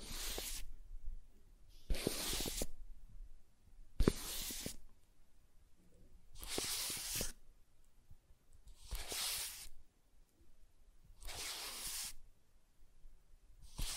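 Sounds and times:
soft tracing on smooth and rough surfaces: 0:00.0 - 0:02.9, 0:03.9 - 0:05.0, 0:05.9 - 0:07.5, 0:08.5 - 0:09.9, 0:11.1 - 0:12.3, 0:13.6 - 0:13.9.

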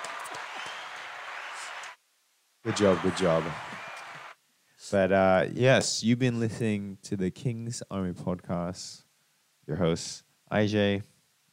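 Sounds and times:
applause: 0:00.0 - 0:02.0, 0:02.7 - 0:04.4
speech: 0:02.6 - 0:03.7, 0:04.9 - 0:09.0, 0:09.7 - 0:11.1.

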